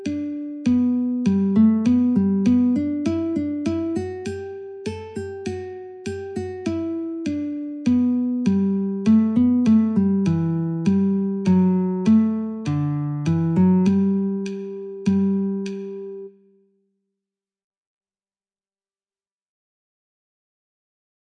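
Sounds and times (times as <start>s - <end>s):
guitar: 0.0s - 16.5s.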